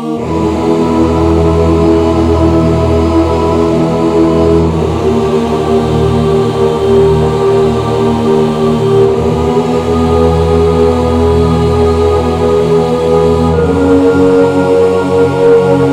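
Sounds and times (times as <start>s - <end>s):
instrumental music: 0.2s - 15.9s.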